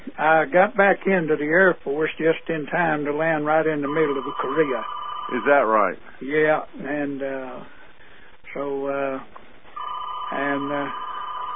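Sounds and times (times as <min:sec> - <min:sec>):
speech: 0:00.2 - 0:07.8, 0:08.5 - 0:09.3, 0:10.3 - 0:11.0
fax phone ringing: 0:03.8 - 0:05.7, 0:09.8 - 0:11.5.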